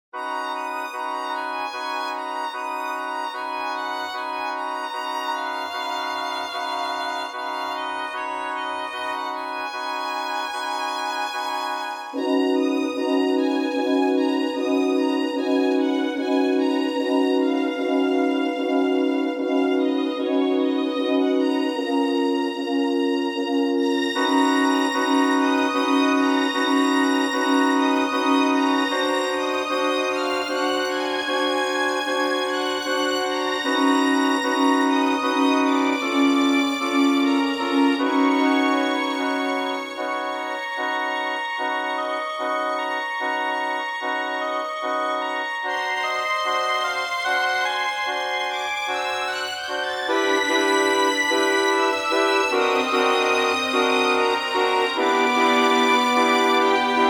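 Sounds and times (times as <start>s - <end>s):
orchestra: 0.2s - 57.0s.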